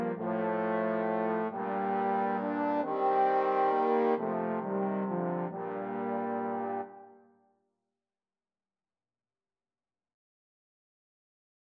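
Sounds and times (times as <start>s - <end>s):
trombone melody: 0.0s - 7.1s.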